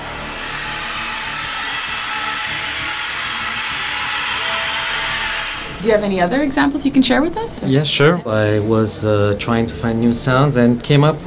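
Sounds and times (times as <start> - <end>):
scratch violin imitating bats flying: 0.0 - 7.4
speech: 5.8 - 11.2.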